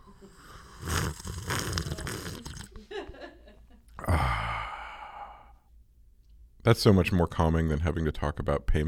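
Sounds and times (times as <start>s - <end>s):
ASMR coffee sipping into the microphone: 0.3s - 2.8s
speech: 6.7s - 8.8s.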